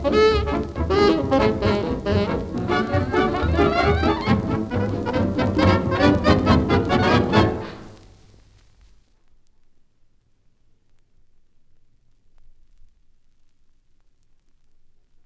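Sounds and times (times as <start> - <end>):
jazz orchestra: 0.0 - 8.1.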